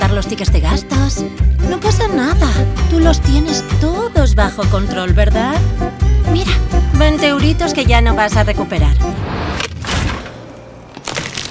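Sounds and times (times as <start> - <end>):
speech: 0.2 - 9.4
brittle chocolate shell of ice cream tub cracking: 11.0 - 11.4.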